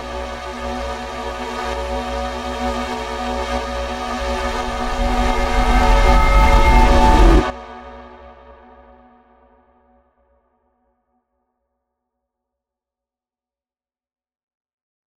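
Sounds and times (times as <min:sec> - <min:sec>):
panic or scary build-up music: 0:00.2 - 0:08.8.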